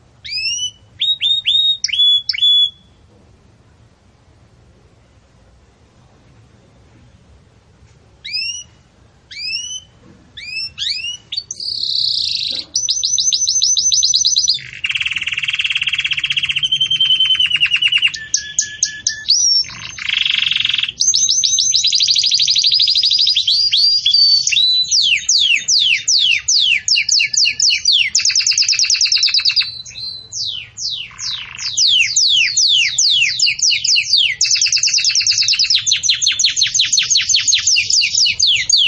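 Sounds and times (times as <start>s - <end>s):
Belgian canary trilling song: 0.0s - 3.1s, 8.2s - 38.8s.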